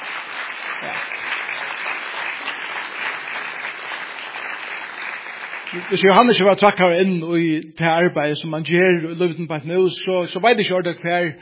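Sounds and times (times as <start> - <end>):
audience applause: 0.0 - 6.4
speech: 5.7 - 11.3.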